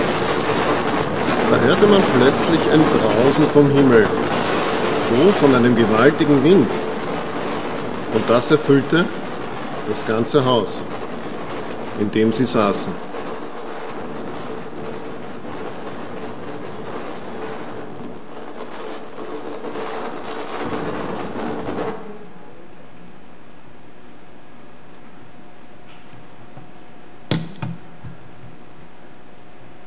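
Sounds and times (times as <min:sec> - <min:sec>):
roaring storm wind: 0:00.0 - 0:24.8
low hum: 0:00.0 - 0:29.8
speech: 0:01.5 - 0:06.9, 0:08.1 - 0:09.2, 0:09.9 - 0:11.0, 0:12.0 - 0:13.1
sharp knock: 0:27.3 - 0:28.2.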